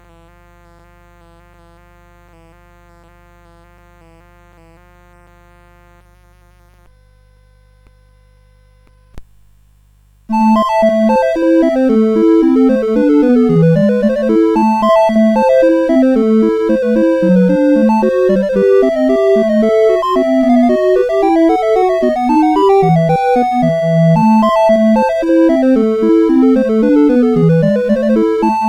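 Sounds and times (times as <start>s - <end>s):
chiptune music on CSG8580R5 chip: 10.3s - 28.6s.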